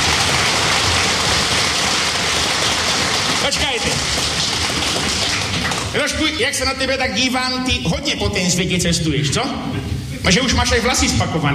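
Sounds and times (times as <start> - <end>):
audience applause: 0.0 - 6.1
speech: 6.0 - 11.5.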